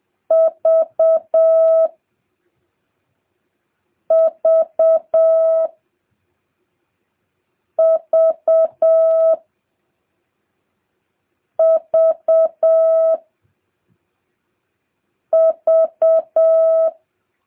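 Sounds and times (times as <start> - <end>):
Morse code letter V beeps in a mid-pitched tone: 0.3 - 1.9, 4.1 - 5.7, 7.8 - 9.4, 11.6 - 13.2, 15.4 - 17.0.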